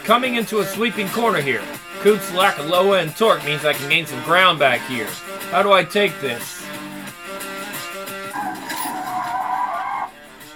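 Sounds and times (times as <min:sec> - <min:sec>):
speech: 0:00.1 - 0:06.6
car tires skidding as the car fishtails in a racing video game: 0:08.3 - 0:10.1
racing video game car engine drone: 0:08.3 - 0:10.1.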